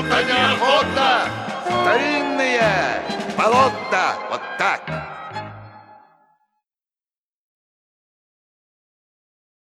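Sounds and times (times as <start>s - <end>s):
song: 0.0s - 6.4s.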